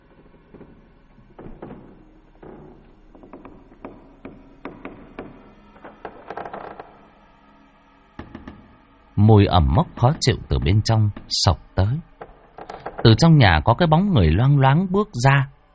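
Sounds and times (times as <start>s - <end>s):
creaking wooden door slowly opening: 0.5s - 7.1s, 9.5s - 13.4s
speech: 9.2s - 12.1s, 13.0s - 15.5s.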